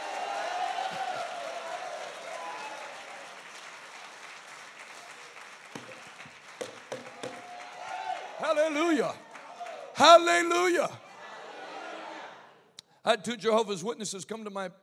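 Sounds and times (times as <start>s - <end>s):
audience shouting: 0.0s - 3.1s, 7.2s - 10.2s, 11.0s - 12.6s
audience clapping: 0.0s - 10.6s
speech: 8.5s - 9.2s, 10.0s - 11.0s, 13.0s - 14.8s.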